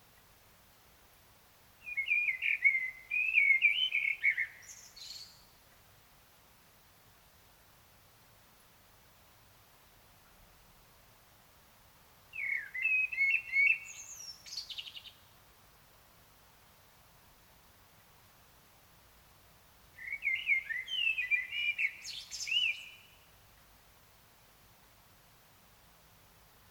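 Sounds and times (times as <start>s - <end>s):
common blackbird singing: 1.8s - 5.5s, 12.4s - 15.2s, 20.0s - 23.2s.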